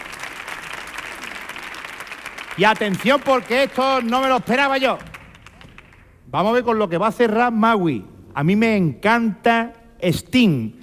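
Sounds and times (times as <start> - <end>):
audience applauding a guitarist returning to the stage at a live music show: 0.0 - 6.2
speech: 2.6 - 5.1, 6.3 - 10.8.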